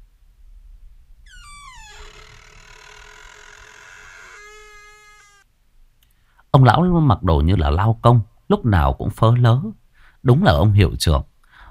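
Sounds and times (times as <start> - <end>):
door slowly opening: 1.3 - 5.5
speech: 6.5 - 11.3.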